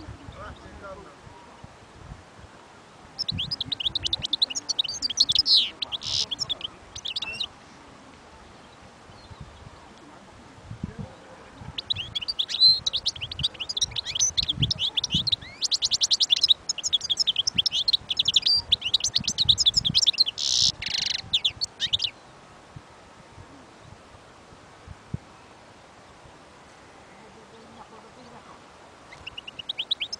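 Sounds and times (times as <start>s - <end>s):
European goldfinch song: 3.2s - 7.5s, 11.8s - 22.3s, 29.1s - 30.1s.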